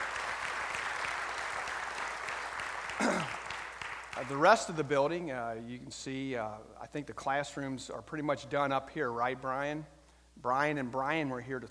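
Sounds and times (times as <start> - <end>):
applause: 0.0 - 4.8
speech: 4.2 - 11.7.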